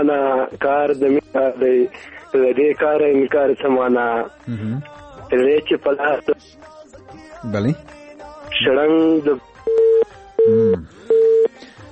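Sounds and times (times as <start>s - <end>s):
speech: 0.0s - 6.7s, 7.4s - 8.0s, 8.6s - 9.5s, 10.5s - 11.0s
telephone busy tone after a call was cut off: 9.7s - 11.5s.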